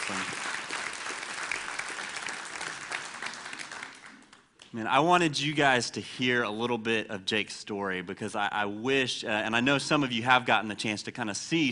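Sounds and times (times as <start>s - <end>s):
audience applause: 0.0s - 4.4s
speech: 4.7s - 11.6s.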